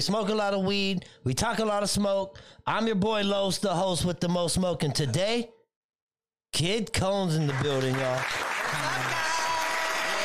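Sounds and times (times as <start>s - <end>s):
speech: 0.0s - 5.6s, 6.5s - 9.0s
applause: 7.3s - 10.2s.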